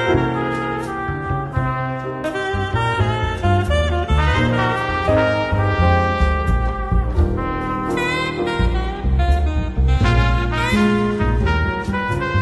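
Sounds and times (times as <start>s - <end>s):
bass: 0.0s - 12.3s
counter melody: 0.0s - 12.3s
rhythm: 0.0s - 12.3s
melody: 4.0s - 11.8s.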